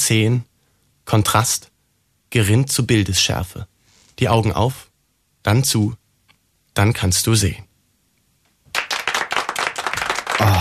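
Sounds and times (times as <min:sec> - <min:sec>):
speech: 0:00.0 - 0:00.5, 0:01.1 - 0:01.7, 0:02.3 - 0:06.0, 0:06.8 - 0:07.7
audience applause: 0:08.7 - 0:10.5.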